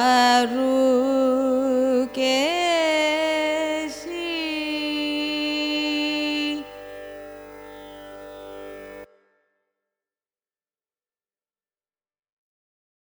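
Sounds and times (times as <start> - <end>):
Carnatic music in a raga: 0.0 - 9.1.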